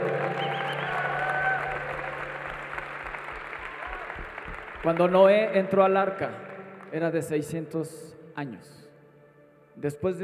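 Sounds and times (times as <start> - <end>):
audience applause: 0.0 - 5.4
speech: 4.8 - 8.8, 9.8 - 10.2.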